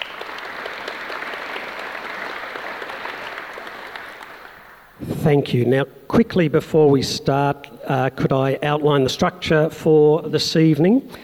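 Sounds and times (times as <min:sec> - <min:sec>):
audience in Melbourne clapping to welcome a panel: 0:00.0 - 0:05.0
speech: 0:05.0 - 0:11.2.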